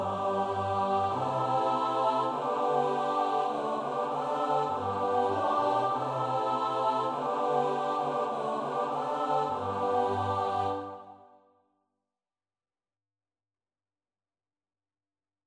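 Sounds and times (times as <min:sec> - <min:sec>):
choir singing: 0:00.0 - 0:11.4.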